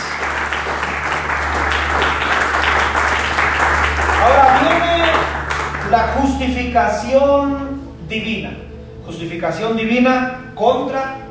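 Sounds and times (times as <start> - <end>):
audience applauding loudly: 0.0 - 6.2
speech: 5.9 - 11.1.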